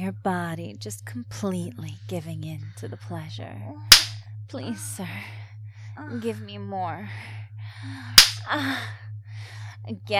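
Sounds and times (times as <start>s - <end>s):
low hum: 0.0s - 10.1s
speech: 0.1s - 5.4s, 6.0s - 9.0s, 9.8s - 10.1s
slap on skin: 3.9s - 4.2s, 8.2s - 8.4s.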